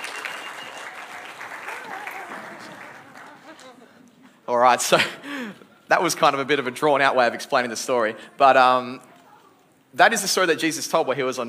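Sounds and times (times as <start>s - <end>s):
church audience clapping: 0.0s - 4.2s
speech: 4.5s - 5.2s, 5.9s - 9.1s, 10.0s - 11.4s.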